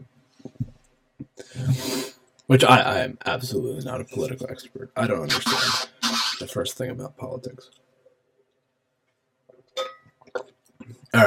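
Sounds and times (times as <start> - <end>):
speech: 2.5 - 7.9
bright glass clinks: 9.8 - 10.1.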